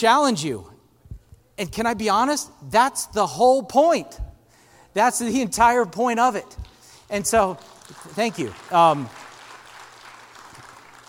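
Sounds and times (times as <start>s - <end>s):
speech: 0.0s - 0.7s, 1.6s - 4.3s, 5.0s - 9.2s
audience clapping for a speaker: 6.6s - 11.0s.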